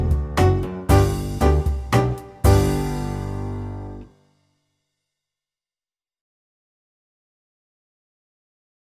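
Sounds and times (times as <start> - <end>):
rhythm section playing: 0.0 - 4.0.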